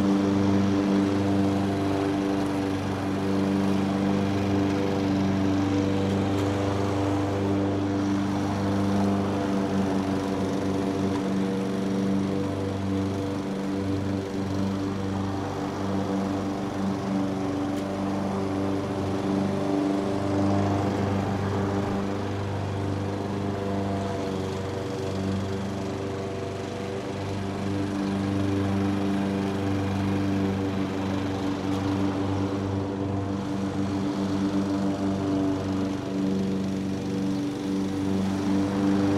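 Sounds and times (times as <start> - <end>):
distant landscaping lawn mowers on a golf course in a city subdivision: 0.0 - 39.1.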